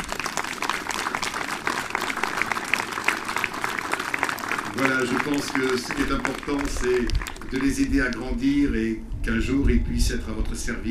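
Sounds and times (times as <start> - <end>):
audience applauding: 0.0 - 8.2
speech: 4.8 - 10.8.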